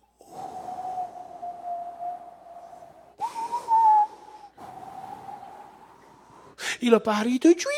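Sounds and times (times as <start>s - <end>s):
voice imitating wind: 0.2s - 6.0s
voice imitating bird whistle: 0.5s - 5.5s
speech: 6.8s - 7.7s.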